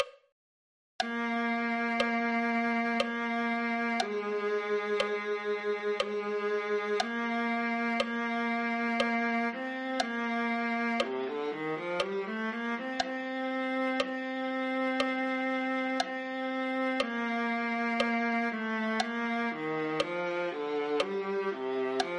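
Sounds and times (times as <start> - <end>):
viola: 1.0 - 22.1.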